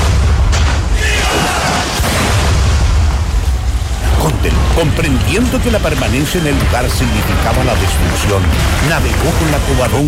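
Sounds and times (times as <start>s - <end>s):
artillery fire in a naval battle: 0.0s - 4.7s
speech: 4.8s - 10.0s.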